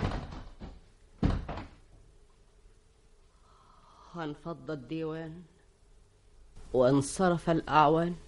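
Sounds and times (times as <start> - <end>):
door pulled shut: 0.0 - 1.8
speech: 4.2 - 5.6, 6.7 - 8.2.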